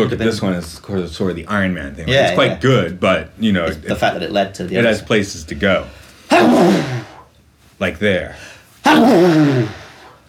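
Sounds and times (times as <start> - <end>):
speech: 0.0 - 7.1, 7.8 - 9.8
person sneezing: 6.3 - 7.3, 8.8 - 10.2.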